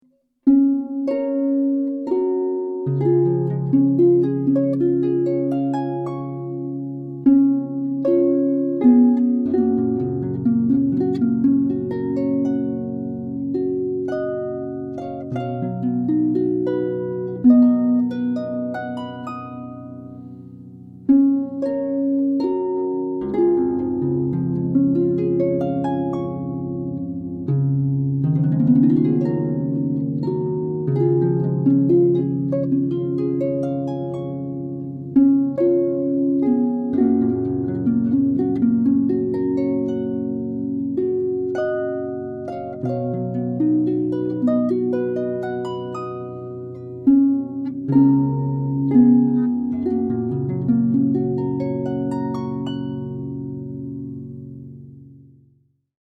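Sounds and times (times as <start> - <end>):
harp: 0.0 - 55.6.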